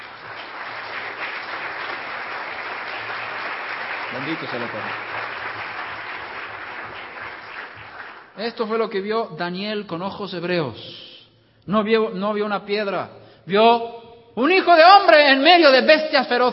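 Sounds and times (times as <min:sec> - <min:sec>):
audience applause: 0:00.0 - 0:08.4
speech: 0:04.1 - 0:05.2, 0:08.4 - 0:11.0, 0:11.7 - 0:16.5.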